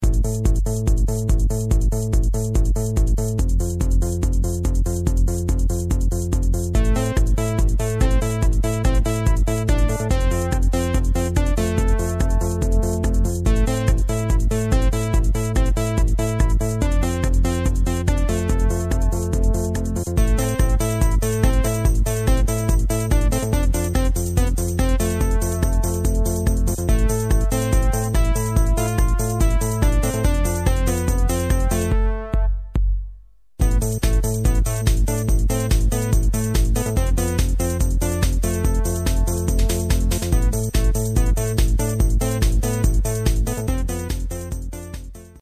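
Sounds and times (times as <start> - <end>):
techno music: 0.1 - 32.7, 33.6 - 45.3.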